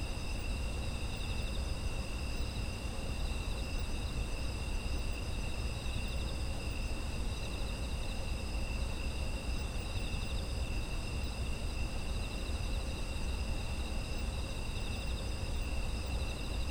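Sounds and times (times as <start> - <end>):
insects trilling: 0.0 - 16.6.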